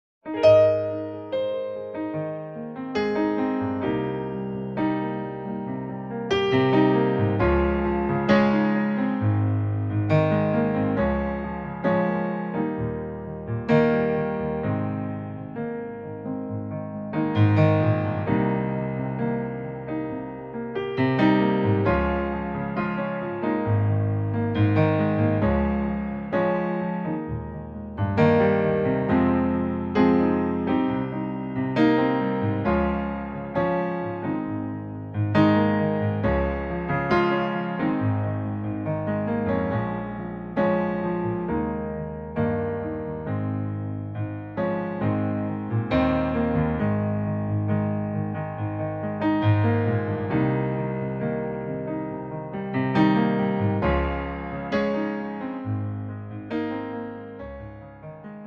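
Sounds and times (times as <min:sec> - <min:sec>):
piano backing track in G sharp major: 0:00.2 - 0:58.4.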